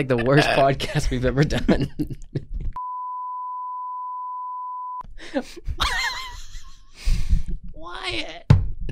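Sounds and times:
speech: 0:00.0 - 0:02.5, 0:05.2 - 0:06.1, 0:07.8 - 0:08.6
high-pitched censorship bleep over podcast speech: 0:02.8 - 0:05.0.

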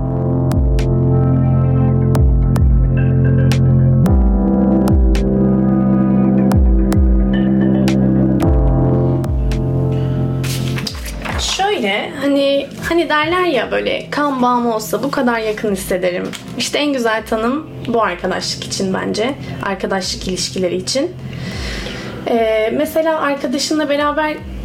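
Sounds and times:
podcast jingle music: 0:00.0 - 0:11.2
speech: 0:12.4 - 0:24.6.

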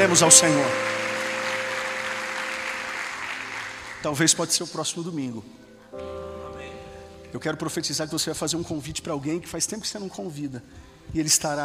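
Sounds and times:
speech: 0:00.0 - 0:01.0, 0:04.0 - 0:06.2, 0:07.3 - 0:11.6
congregation applauding at a church service: 0:00.0 - 0:05.0.

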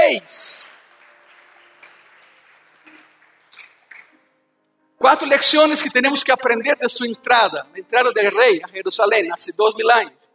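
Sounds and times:
audience applause: 0:00.0 - 0:04.2
speech: 0:00.1 - 0:00.5, 0:05.0 - 0:10.3.

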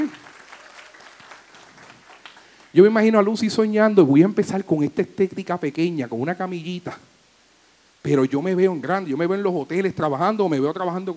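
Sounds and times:
applause: 0:00.0 - 0:02.8
speech: 0:02.8 - 0:07.1, 0:08.0 - 0:11.1.

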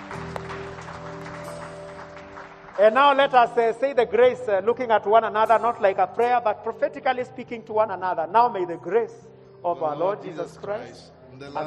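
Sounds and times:
audience clapping: 0:00.0 - 0:03.6
speech: 0:02.8 - 0:11.6.

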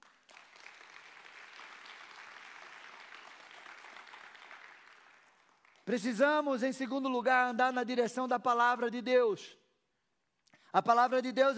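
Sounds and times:
audience applauding: 0:00.0 - 0:05.9
speech: 0:05.9 - 0:09.6, 0:10.7 - 0:11.5.

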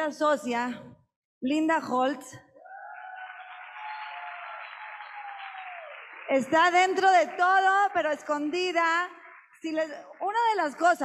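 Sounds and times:
speech: 0:00.0 - 0:02.5, 0:06.3 - 0:11.0
audience applause: 0:02.6 - 0:11.0.

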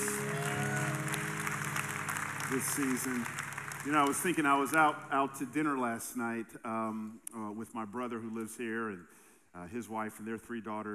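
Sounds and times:
audience hand clapping: 0:00.0 - 0:05.6
speech: 0:02.5 - 0:10.9.

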